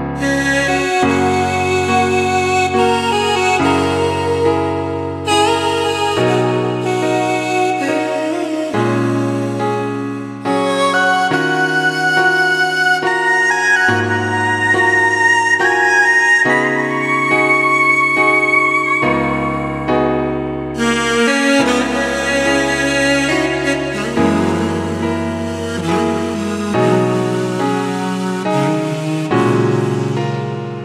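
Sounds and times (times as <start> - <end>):
saxophone: 0.2 - 30.8.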